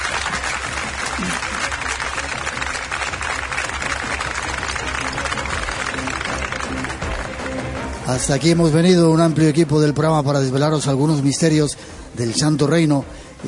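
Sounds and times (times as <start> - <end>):
audience applause in a cave: 0.0 - 8.8
speech: 1.2 - 1.6, 8.1 - 13.4.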